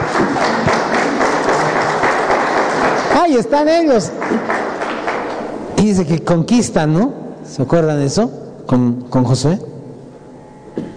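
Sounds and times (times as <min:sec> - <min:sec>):
audience applause: 0:00.0 - 0:05.6
speech: 0:03.2 - 0:04.5, 0:05.8 - 0:09.7.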